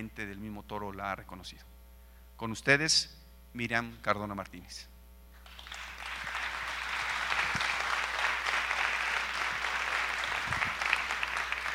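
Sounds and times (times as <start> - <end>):
speech: 0.0 - 1.8, 2.4 - 4.9
audience applause at a bullfighting journalism congress: 5.4 - 11.7.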